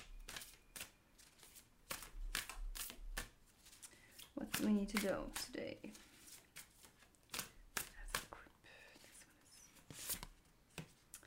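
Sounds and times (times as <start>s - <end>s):
cards handled and drawn from a Super Attractor oracle card deck: 0.2s - 8.3s
speech: 4.4s - 6.1s.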